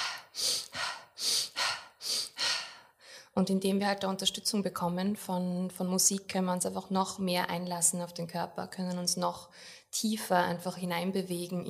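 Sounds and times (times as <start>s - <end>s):
rapid rhythmic breathing exercise: 0.0s - 3.3s
speech: 3.4s - 11.6s.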